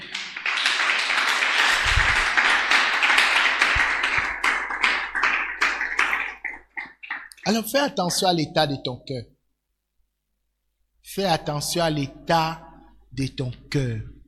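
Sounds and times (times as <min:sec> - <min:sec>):
congregation applauding during a church service: 0:00.0 - 0:07.8
speech: 0:07.5 - 0:09.3, 0:11.2 - 0:14.1.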